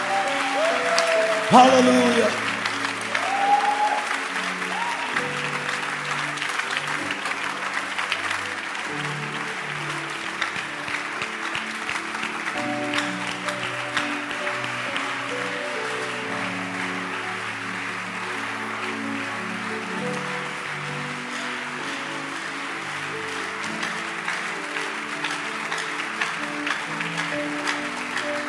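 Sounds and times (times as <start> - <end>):
audience clapping: 0.0 - 28.4
speech: 1.5 - 2.5.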